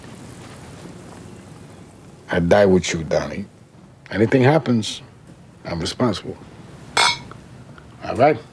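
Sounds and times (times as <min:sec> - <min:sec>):
speech: 0:02.3 - 0:03.5, 0:04.1 - 0:06.5, 0:08.1 - 0:08.5
glasses clinking in a toast: 0:07.0 - 0:07.4.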